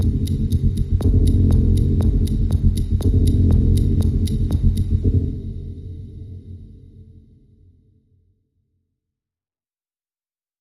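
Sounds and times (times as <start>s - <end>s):
dark ticking drone: 0.0s - 7.1s.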